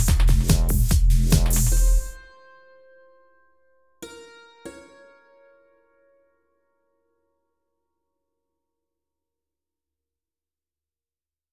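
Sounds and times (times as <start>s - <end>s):
brutal rap techno music: 0.0s - 2.2s.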